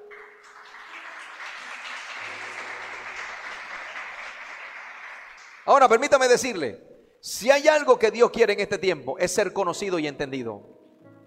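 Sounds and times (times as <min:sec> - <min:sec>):
crowd applause: 0:00.0 - 0:05.9
speech: 0:05.7 - 0:10.7.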